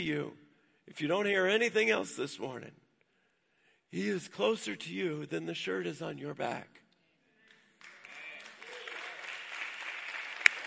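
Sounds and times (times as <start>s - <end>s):
speech: 0.0s - 2.8s, 3.9s - 6.8s
audience clapping: 7.5s - 10.6s.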